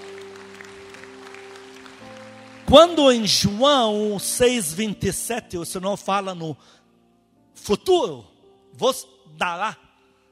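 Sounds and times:
audience applause: 0.0 - 3.2
speech: 2.7 - 6.8, 7.6 - 9.8.

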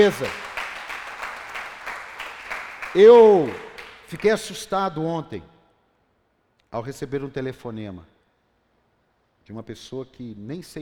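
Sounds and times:
speech: 0.0 - 0.4, 2.9 - 5.5, 6.7 - 8.1, 9.5 - 10.8
audience applause: 0.0 - 4.0.

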